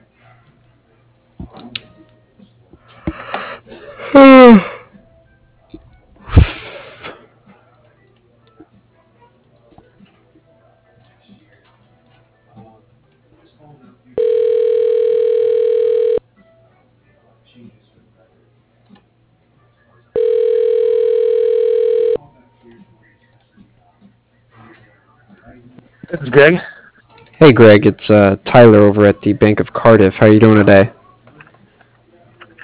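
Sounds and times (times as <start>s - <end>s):
speech: 4.1s - 4.7s, 26.3s - 26.7s, 27.4s - 31.0s
telephone ringing during call transfer: 14.2s - 16.2s, 20.2s - 22.2s.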